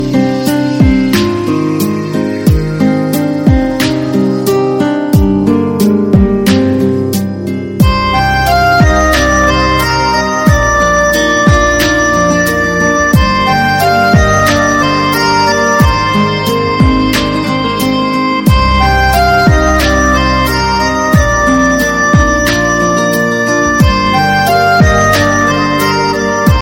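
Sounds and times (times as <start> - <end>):
instrumental Bollywood ringtone: 0.0 - 26.5.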